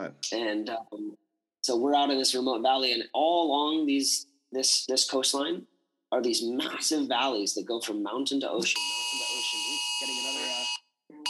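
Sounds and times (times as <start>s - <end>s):
speech: 0.1s - 10.3s
phone emergency warning alert tone: 8.8s - 11.2s.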